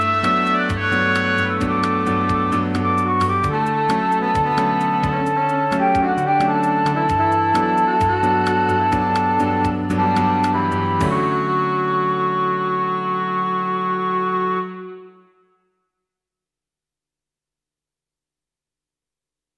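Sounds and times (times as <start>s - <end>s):
cafe music without bass: 0.0s - 15.5s.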